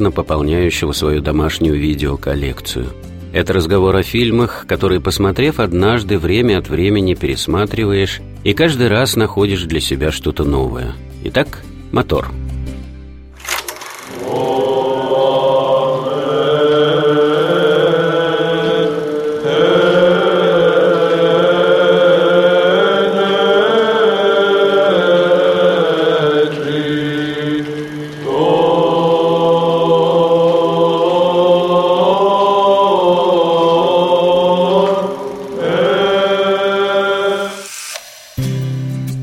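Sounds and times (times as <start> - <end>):
speech: 0.0 - 12.5
monks chanting in an ancient monastery on Athos: 14.1 - 37.8.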